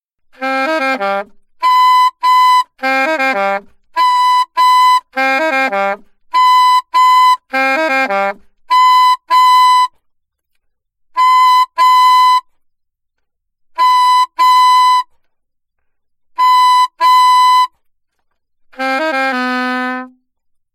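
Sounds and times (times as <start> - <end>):
alto saxophone: 0.3 - 10.0, 11.1 - 12.6, 13.7 - 15.3, 16.3 - 17.8, 18.6 - 20.4.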